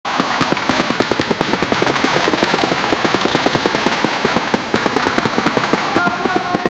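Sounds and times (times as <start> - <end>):
soldiers marching: 0.1 - 6.7.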